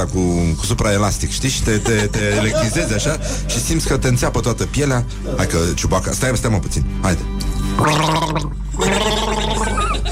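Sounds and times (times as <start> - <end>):
speech: 0.0 - 9.2
laughter: 1.6 - 4.2, 9.0 - 10.0
person gargling a mouthful of water: 7.8 - 9.7.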